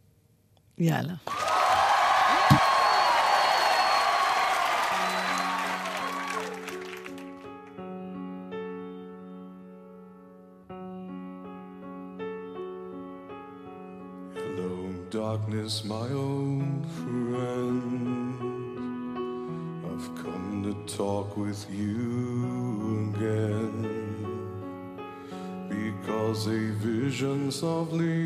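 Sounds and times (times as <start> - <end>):
speech: 0.8 - 1.4, 27.2 - 28.2
live studio audience applauding and cheering: 1.2 - 7.8
live TV show musical performance with singing: 1.4 - 7.0, 14.4 - 28.2.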